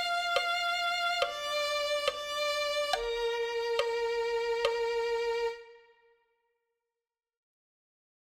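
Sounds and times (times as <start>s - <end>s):
violin: 0.0s - 6.2s.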